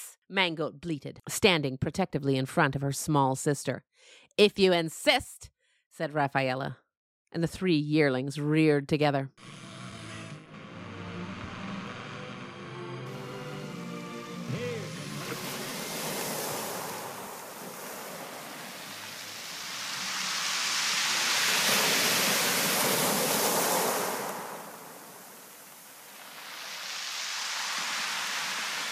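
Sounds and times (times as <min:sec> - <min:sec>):
speech: 0:00.3 - 0:09.6
ocean waves crashing: 0:13.1 - 0:28.8.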